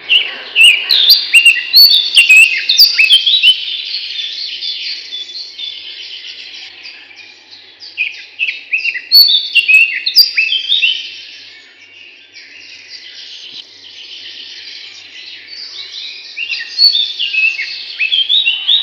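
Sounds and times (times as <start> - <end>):
Eurasian blackcap song: 0.0 - 18.8.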